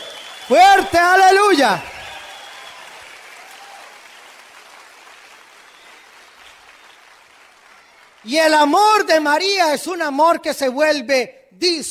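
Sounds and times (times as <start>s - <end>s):
audience applauding: 0.0s - 9.3s
speech: 0.5s - 1.9s, 8.2s - 11.8s.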